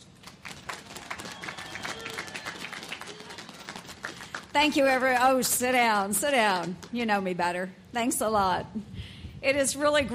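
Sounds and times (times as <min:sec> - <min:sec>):
audience applause welcoming guest speaker Iowa Senator Joni Ernst at USS Sioux City commissioning ceremony: 0:00.0 - 0:04.8
speech: 0:04.6 - 0:10.1.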